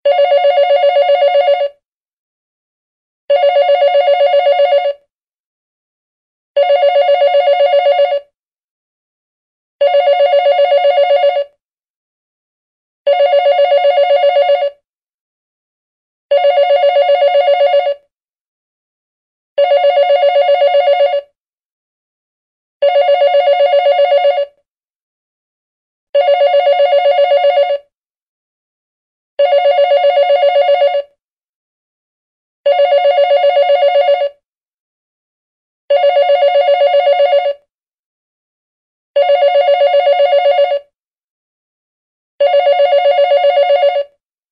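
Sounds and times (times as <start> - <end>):
office desk phone ringtone: 0.1 - 1.8, 3.3 - 5.1, 6.6 - 8.4, 9.8 - 11.6, 13.1 - 14.8, 16.3 - 18.1, 19.6 - 21.4, 22.8 - 24.6, 26.2 - 27.9, 29.4 - 31.2, 32.7 - 34.4, 35.9 - 37.7, 39.2 - 41.0, 42.4 - 44.2.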